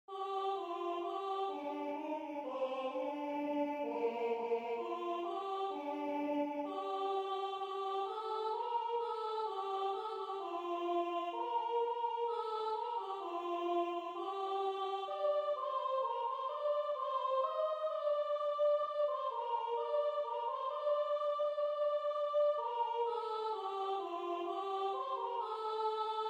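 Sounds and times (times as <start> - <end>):
choir singing in unison: 0.1 - 26.2.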